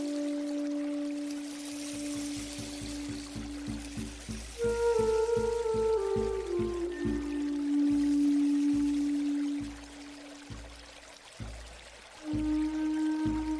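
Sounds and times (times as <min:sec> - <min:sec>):
Native American flute playing long held notes: 0:00.0 - 0:13.5
running water hissing: 0:00.0 - 0:13.5.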